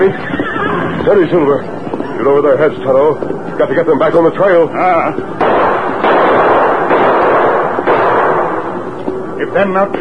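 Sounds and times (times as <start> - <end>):
speech: 1.0 - 5.8, 9.4 - 9.9
gunshots: 5.4 - 9.0.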